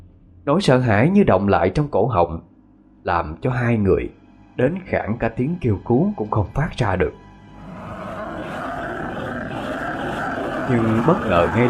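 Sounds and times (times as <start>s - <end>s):
speech: 0.4s - 7.2s, 10.7s - 11.6s
monstrous growling roar: 7.6s - 11.6s.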